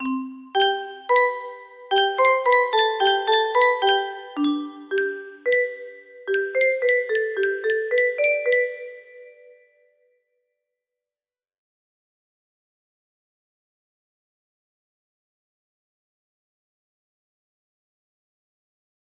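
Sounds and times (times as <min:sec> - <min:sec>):
music box: 0:00.0 - 0:09.6.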